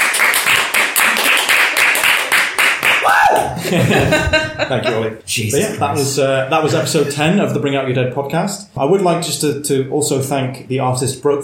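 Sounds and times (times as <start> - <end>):
applause: 0.0 - 3.6
laughter: 3.4 - 7.6
speech: 3.7 - 11.4.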